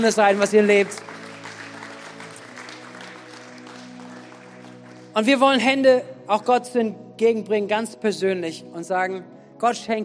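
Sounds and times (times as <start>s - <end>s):
speech: 0.0s - 1.2s, 5.2s - 10.0s
audience applause: 0.0s - 5.2s.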